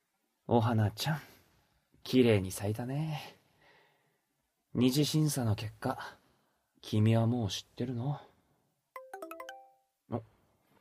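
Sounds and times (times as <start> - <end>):
speech: 0.5 - 1.3, 2.0 - 3.4, 4.7 - 6.2, 6.8 - 8.3, 10.1 - 10.3
phone incoming email notification chime: 9.0 - 9.9.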